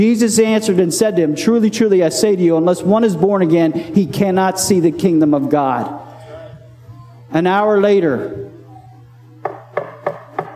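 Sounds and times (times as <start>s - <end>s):
speech: 0.0s - 6.1s, 7.3s - 8.4s
knock at a motel room door: 9.4s - 10.5s.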